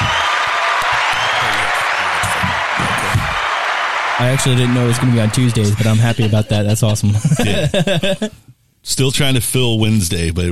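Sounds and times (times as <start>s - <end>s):
audience applause: 0.0s - 6.7s
speech: 4.2s - 10.5s
laughter: 4.4s - 8.4s.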